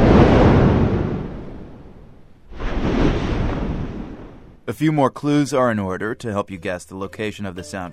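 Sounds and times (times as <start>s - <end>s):
active volcano crater rumbling and erupting: 0.0s - 4.7s
speech: 4.7s - 7.9s.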